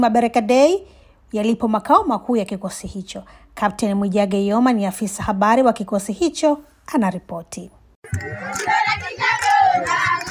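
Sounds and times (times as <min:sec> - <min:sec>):
speech: 0:00.0 - 0:08.8
villagers in Moro cheering to welcome Tanzanian peacekeepers: 0:08.0 - 0:10.3.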